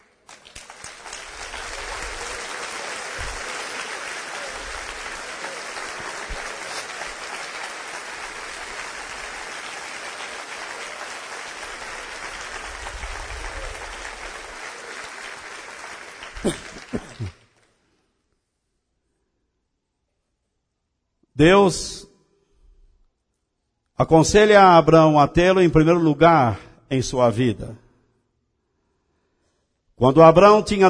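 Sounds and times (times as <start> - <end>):
audience applauding: 0.0 - 17.7
speech: 16.4 - 16.7, 21.4 - 22.1, 24.0 - 27.8, 30.0 - 30.8.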